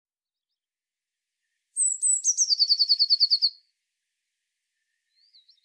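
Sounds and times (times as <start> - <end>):
Eurasian blue tit trilling song: 1.8 - 3.6
faint twittering: 1.8 - 3.6.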